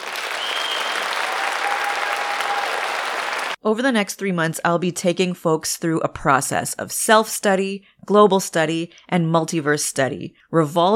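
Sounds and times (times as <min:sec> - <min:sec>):
rambunctious crowd applause and cheering sound effect: 0:00.0 - 0:03.6
faint sustained whistles: 0:00.3 - 0:02.7
speech: 0:03.6 - 0:10.9.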